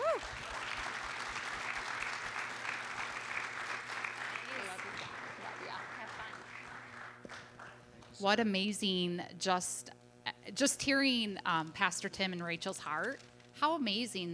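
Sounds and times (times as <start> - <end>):
audience applause at a church service: 0.0 - 7.8
speech: 8.2 - 9.9, 10.5 - 14.3.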